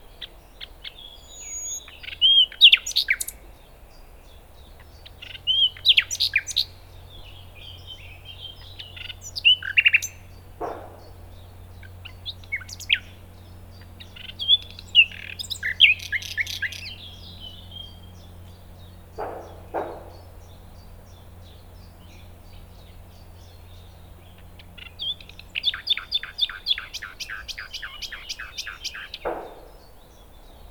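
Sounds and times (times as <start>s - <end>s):
common nightingale song: 0.0s - 30.7s
dull knocks: 10.6s - 11.3s, 19.2s - 20.4s, 29.2s - 29.9s.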